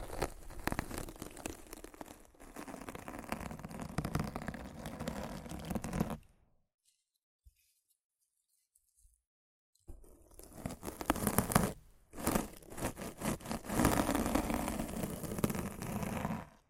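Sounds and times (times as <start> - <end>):
rough scratching and brushing against a microphone: 0.0 - 6.3, 10.3 - 16.6.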